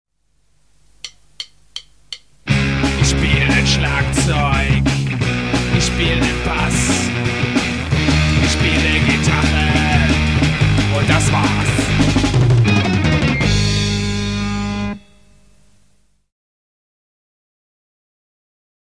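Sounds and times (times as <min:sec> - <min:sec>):
rock and roll music: 0:01.1 - 0:15.2.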